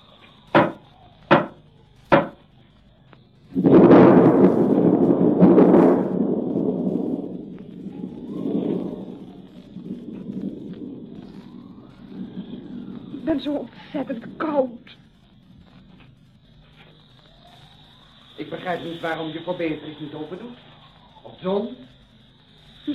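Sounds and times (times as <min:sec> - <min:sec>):
rumbling rushing noise: 0:00.0 - 0:22.9
knocking with a door knocker: 0:00.6 - 0:02.4
speech: 0:13.4 - 0:15.0, 0:18.5 - 0:20.7, 0:21.4 - 0:21.9.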